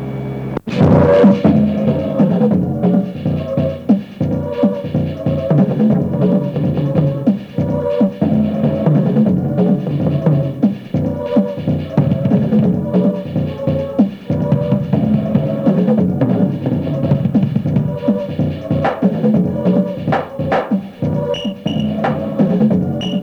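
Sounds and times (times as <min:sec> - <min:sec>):
bells ringing at night: 0:00.0 - 0:23.2.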